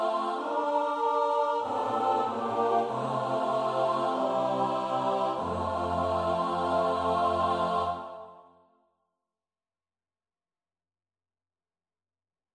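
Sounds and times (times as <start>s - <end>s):
SATB choir part practice: 0.0s - 8.6s.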